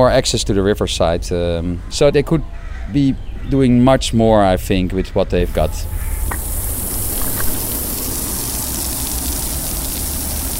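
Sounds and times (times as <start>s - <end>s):
speech: 0.0s - 6.5s
enormous fountain hissing and splashing: 5.5s - 10.5s.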